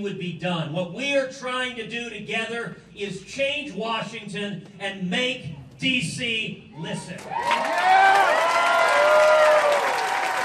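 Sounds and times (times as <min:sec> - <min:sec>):
speech: 0:00.0 - 0:08.2
rally crowd cheering and applauding: 0:07.2 - 0:10.4.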